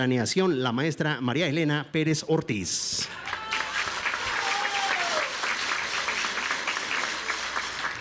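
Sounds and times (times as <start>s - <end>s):
speech: 0.0s - 3.3s
audience applause: 3.1s - 7.9s.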